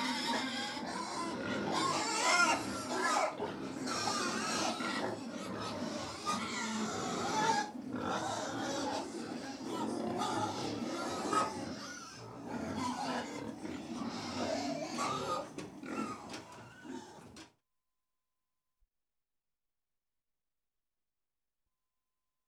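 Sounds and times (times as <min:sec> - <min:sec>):
pigs grunting and squealing: 0:00.0 - 0:17.4.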